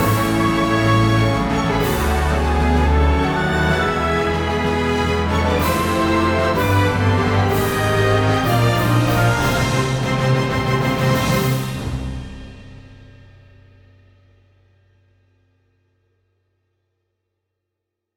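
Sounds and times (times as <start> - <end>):
victory fanfare: 0.0 - 12.2.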